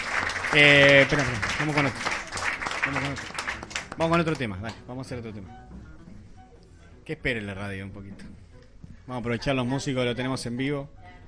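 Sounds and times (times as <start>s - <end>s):
audience applause: 0.0s - 4.4s
speech: 0.5s - 2.2s, 2.9s - 3.4s, 4.0s - 5.9s, 7.1s - 8.4s, 9.1s - 11.0s.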